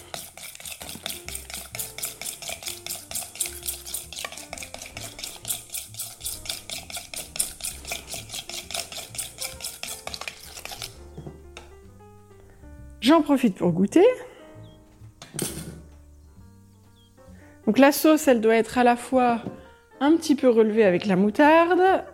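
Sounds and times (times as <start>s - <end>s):
spoon stirring sauce ingredients in a bowl: 0.0s - 11.3s
speech: 13.1s - 14.3s, 17.7s - 22.1s.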